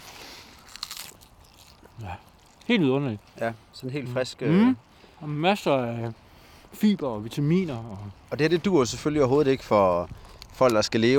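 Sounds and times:
crisp bite into a fresh cabbage sprout: 0.0s - 2.7s
speech: 2.0s - 11.1s.

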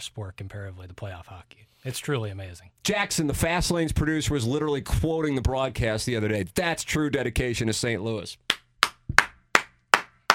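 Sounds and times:
speech: 0.0s - 8.6s
person clapping hands: 8.5s - 10.3s.

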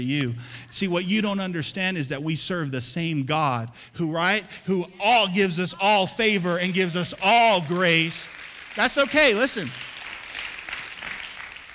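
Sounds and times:
speech: 0.0s - 9.9s
audience clapping: 6.6s - 11.7s.

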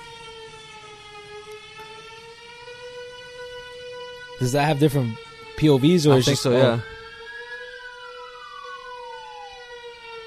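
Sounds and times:
wailing alarm siren: 0.0s - 10.2s
speech: 4.4s - 6.9s.

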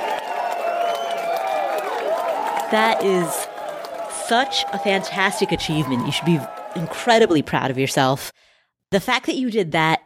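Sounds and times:
whoops and cheering voices: 0.0s - 7.8s
crowd applauding: 0.0s - 8.0s
speech: 2.7s - 3.4s, 4.3s - 8.3s, 8.9s - 10.0s.

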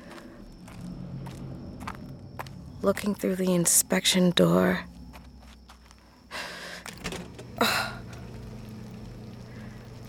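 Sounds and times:
footsteps walking: 0.0s - 3.8s, 4.9s - 6.2s
constant low hum: 0.0s - 10.0s
speech: 2.8s - 4.9s.

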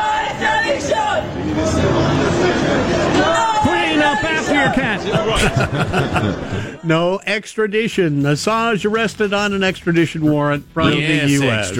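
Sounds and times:
protesters chanting outside a courthouse: 0.0s - 5.8s
laughter: 1.6s - 6.9s
speech: 4.6s - 11.7s.

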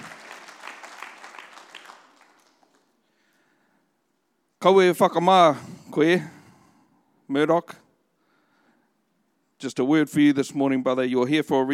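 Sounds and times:
audience clapping hands: 0.0s - 3.1s
speech: 4.6s - 6.4s, 7.3s - 7.8s, 9.6s - 11.7s.

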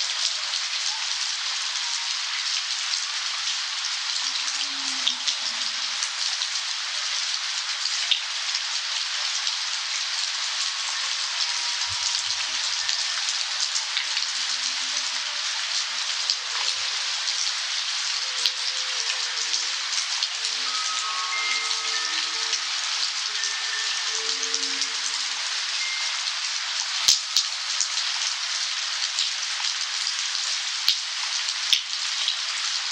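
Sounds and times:
rainstorm in Modesto, California: 0.0s - 32.9s
wind chimes twinkling in a rainstorm: 19.8s - 26.8s.

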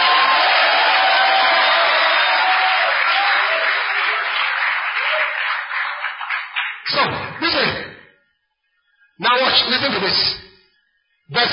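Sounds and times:
audience clapping and shouting: 0.0s - 7.8s
speech: 9.8s - 10.4s.

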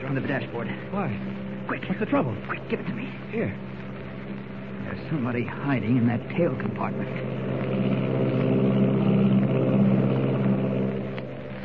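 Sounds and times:
army plane engine roaring in flight: 0.0s - 11.6s
speech: 0.1s - 8.0s.

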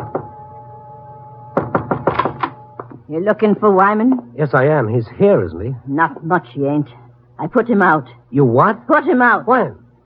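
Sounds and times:
knocking on a rooming house door: 0.0s - 0.3s, 1.6s - 3.0s
faint steady hum: 0.0s - 10.0s
speech: 3.1s - 9.8s.

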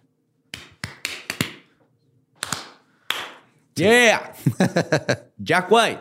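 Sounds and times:
off-rhythm hand clapping: 0.5s - 1.7s, 2.4s - 3.5s
speech: 3.8s - 5.9s
laughter: 4.4s - 5.3s.

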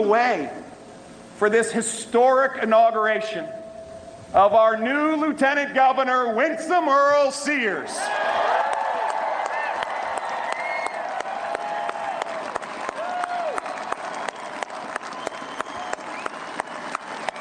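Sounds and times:
speech: 0.0s - 0.8s, 1.4s - 3.6s, 4.3s - 8.4s
crowd standing ovation applause: 8.0s - 17.3s.

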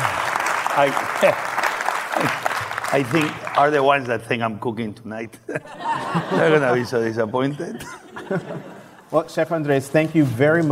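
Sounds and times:
live audience standing ovation clapping at an onstage interview: 0.0s - 4.3s
speech: 0.8s - 1.5s, 2.2s - 10.7s
laughter: 5.3s - 9.2s.

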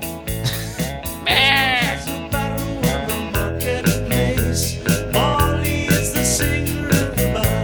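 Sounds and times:
rhythmic pop track with a steady thumping beat: 0.0s - 7.6s
bleating goat-like voice: 1.2s - 2.1s.

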